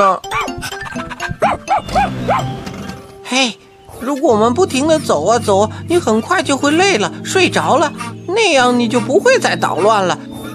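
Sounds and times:
speech: 0:00.0 - 0:01.1, 0:02.3 - 0:02.7, 0:03.3 - 0:10.3
dog barking: 0:01.4 - 0:02.5.

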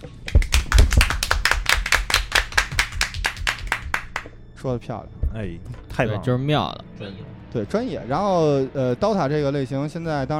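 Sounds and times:
clapping: 0:00.0 - 0:04.4
speech: 0:04.6 - 0:10.3.

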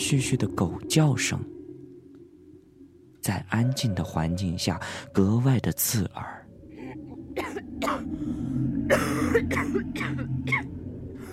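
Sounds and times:
speech: 0:00.1 - 0:01.6, 0:03.2 - 0:06.4, 0:07.4 - 0:10.1
person coughing: 0:07.4 - 0:08.1, 0:08.9 - 0:10.7.

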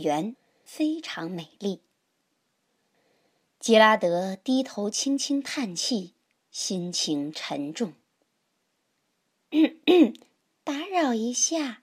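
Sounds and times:
speech: 0:00.0 - 0:01.9, 0:03.6 - 0:08.0, 0:09.5 - 0:11.8
person imitating a cough: 0:09.6 - 0:10.3.

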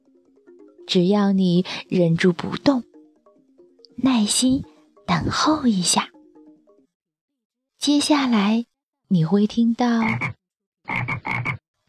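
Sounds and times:
speech: 0:00.9 - 0:02.9, 0:04.0 - 0:06.1, 0:07.8 - 0:11.1
frog croaking: 0:10.0 - 0:11.8.

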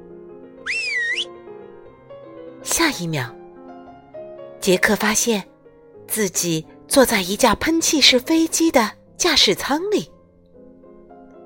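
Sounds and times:
whistle blown: 0:00.6 - 0:01.3
speech: 0:02.7 - 0:03.4, 0:04.7 - 0:05.5, 0:06.1 - 0:10.1.

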